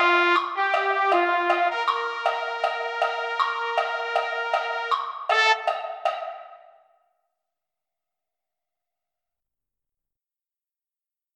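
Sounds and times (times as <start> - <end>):
trumpet: 0.0 - 6.4.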